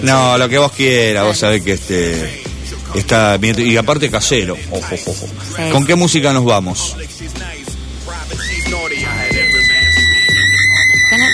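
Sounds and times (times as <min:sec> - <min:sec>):
speech: 0:00.0 - 0:07.5
person screaming: 0:08.5 - 0:11.3.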